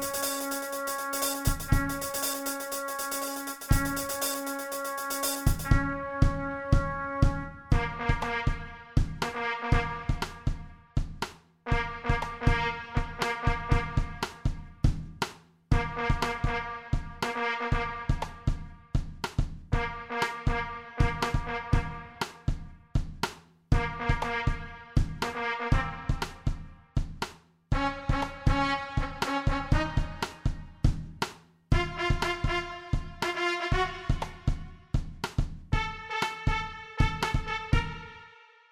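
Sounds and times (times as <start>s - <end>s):
drum kit: 0.0s - 8.3s, 9.0s - 11.5s, 13.8s - 16.4s, 18.2s - 19.7s, 21.0s - 24.3s, 25.0s - 25.4s, 26.0s - 27.5s, 29.0s - 37.9s
trumpet: 0.0s - 10.8s, 11.7s - 14.4s, 15.7s - 18.8s, 19.7s - 22.4s, 23.8s - 26.8s, 27.7s - 30.8s, 31.7s - 34.8s, 35.7s - 38.7s.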